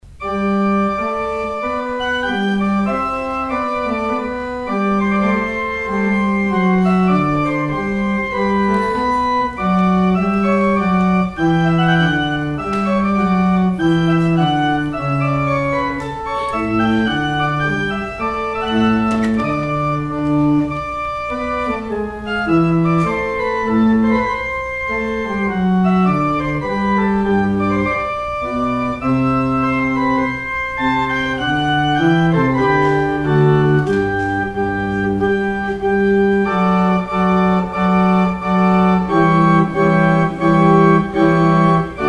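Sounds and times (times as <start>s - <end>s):
organ outro: 0.0s - 42.0s.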